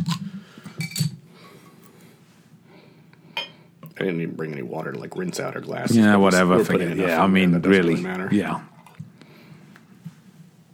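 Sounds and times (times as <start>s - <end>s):
beer bottle clinking: 0.7s - 1.2s
speech: 4.0s - 8.7s.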